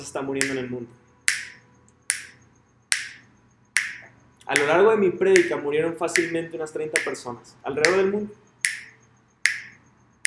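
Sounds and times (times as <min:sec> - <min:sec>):
speech: 0:00.0 - 0:01.0, 0:04.5 - 0:08.4
finger snaps: 0:00.4 - 0:00.6, 0:01.3 - 0:03.2, 0:03.8 - 0:04.8, 0:05.4 - 0:05.6, 0:06.2 - 0:06.4, 0:07.0 - 0:07.2, 0:08.7 - 0:10.2.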